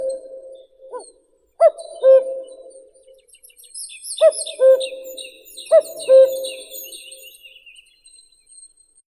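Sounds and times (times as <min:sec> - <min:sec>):
common cuckoo Cuculus canorus calling: 0:00.0 - 0:07.6.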